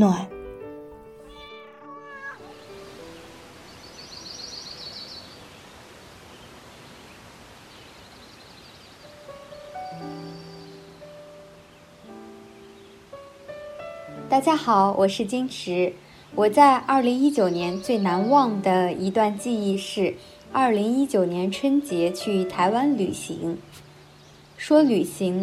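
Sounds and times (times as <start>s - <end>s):
speech: 0.0s - 0.3s, 14.4s - 23.8s, 24.6s - 25.4s
cat meowing: 1.2s - 2.7s
steady soft hiss: 2.4s - 25.4s.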